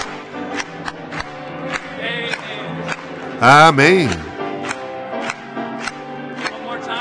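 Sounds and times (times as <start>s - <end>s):
audience clapping hands: 3.4s - 4.3s
speech: 3.4s - 4.3s.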